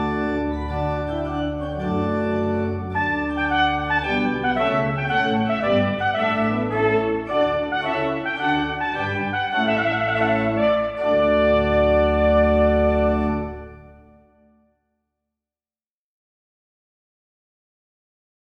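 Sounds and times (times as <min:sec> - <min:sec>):
trumpet piece: 0:00.0 - 0:14.5.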